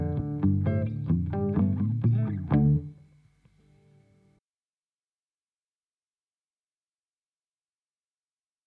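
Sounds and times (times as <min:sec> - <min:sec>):
guitar playing: 0:00.0 - 0:03.0.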